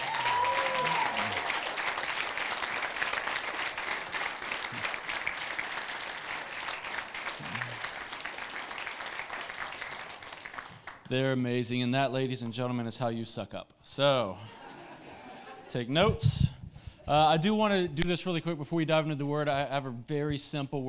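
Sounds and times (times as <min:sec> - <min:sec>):
whoops and shouted voices: 0:00.0 - 0:01.8
audience cheering and applauding: 0:00.0 - 0:11.1
speech: 0:11.1 - 0:14.6, 0:15.7 - 0:16.5, 0:17.1 - 0:20.8
laughter: 0:14.4 - 0:17.0.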